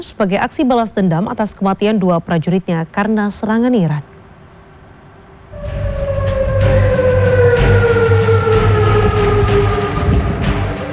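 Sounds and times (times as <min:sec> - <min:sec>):
speech: 0:00.0 - 0:04.1
air raid warning siren echoing across Amman: 0:05.5 - 0:10.9.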